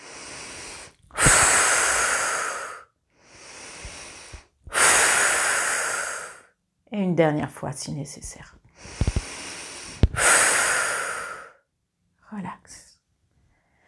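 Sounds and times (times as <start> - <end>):
slow deep breathing during a guided relaxation exercise: 0.0 - 6.5, 8.7 - 11.6
speech: 7.0 - 9.0.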